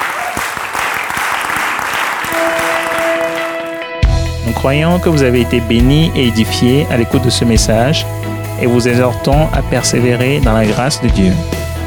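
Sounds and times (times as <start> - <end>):
large audience clapping and cheering: 0.0 - 4.1
speech: 4.6 - 11.6.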